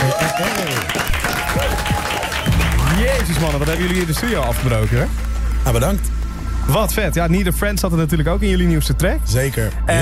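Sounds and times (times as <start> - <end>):
studio audience applauding a band: 0.0 - 6.4
speech: 3.4 - 10.0.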